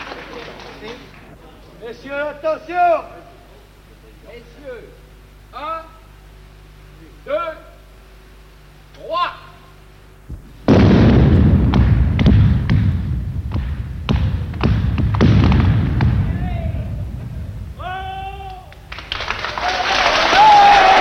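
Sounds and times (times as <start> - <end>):
speech: 1.8 - 3.2, 4.3 - 5.9, 7.2 - 7.7, 9.0 - 9.4
heavy blast: 10.3 - 19.3
raised voices: 16.2 - 20.9.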